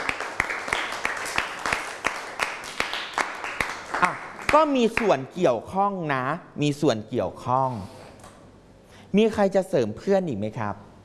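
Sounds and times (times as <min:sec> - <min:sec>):
classroom applause: 0:00.0 - 0:05.1
speech: 0:04.0 - 0:08.0, 0:09.1 - 0:10.9.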